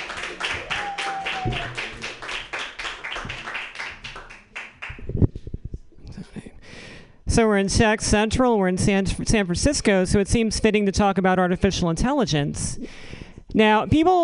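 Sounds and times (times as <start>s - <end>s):
audience clapping at a San Francisco comedy open-mic night: 0.0s - 5.2s
speech: 7.4s - 12.9s, 13.5s - 14.2s.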